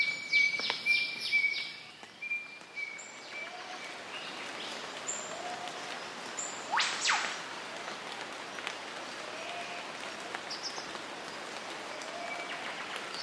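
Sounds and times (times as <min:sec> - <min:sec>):
rainforest ambience in Queensland: 0:00.0 - 0:13.2.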